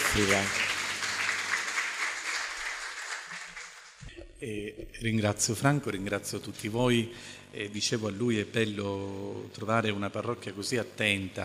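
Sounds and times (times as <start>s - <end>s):
warm audience applause: 0.0s - 4.0s
speech: 0.1s - 0.7s, 4.4s - 11.4s.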